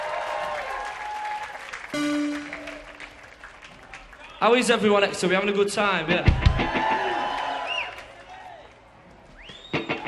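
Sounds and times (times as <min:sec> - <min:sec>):
audience applause: 0:00.0 - 0:04.9, 0:06.4 - 0:08.9
speech: 0:04.4 - 0:06.9.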